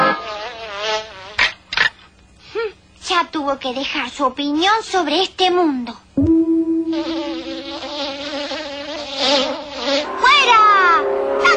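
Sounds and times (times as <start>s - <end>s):
fly buzzing: 0.0s - 1.6s, 6.7s - 10.8s
speech: 3.4s - 7.3s.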